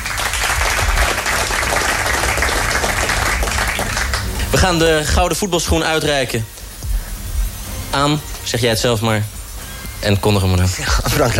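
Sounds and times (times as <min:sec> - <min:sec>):
large audience applause: 0:00.0 - 0:05.2
speech: 0:04.6 - 0:06.6, 0:07.9 - 0:09.4, 0:10.0 - 0:11.3.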